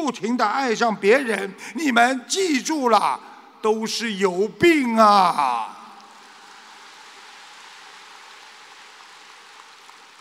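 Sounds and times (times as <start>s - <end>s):
speech: 0.0s - 5.8s
audience applause: 6.1s - 10.1s.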